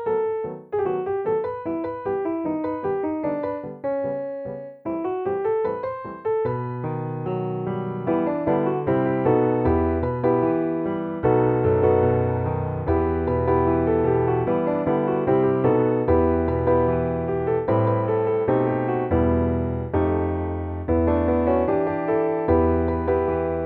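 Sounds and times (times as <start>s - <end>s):
solo piano: 0.0s - 23.6s.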